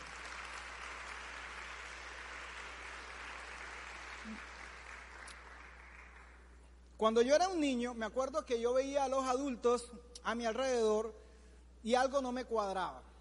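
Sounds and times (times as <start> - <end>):
audience applause: 0.0 - 6.4
speech: 4.2 - 4.5, 7.0 - 11.2, 11.8 - 13.1.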